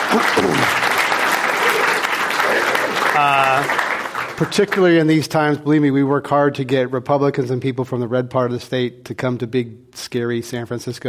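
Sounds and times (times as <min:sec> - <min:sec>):
audience at a San Francisco discussion event applauding a guest speaker: 0:00.0 - 0:05.0
speech: 0:00.1 - 0:00.9, 0:03.2 - 0:11.0.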